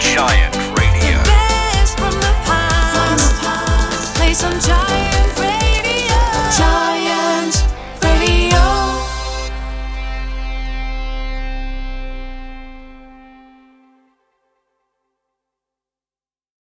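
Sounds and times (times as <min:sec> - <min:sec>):
sung jingle in G major: 0:00.0 - 0:06.8, 0:07.8 - 0:13.8.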